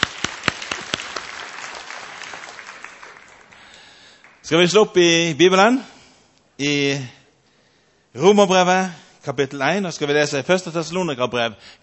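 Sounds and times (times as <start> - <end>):
audience applause: 0.0 - 4.4
speech: 4.5 - 5.9, 6.6 - 7.2, 8.2 - 11.8.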